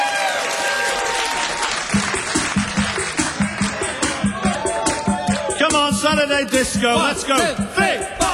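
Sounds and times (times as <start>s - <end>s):
audience applause: 0.0s - 5.5s
speech: 6.2s - 8.2s.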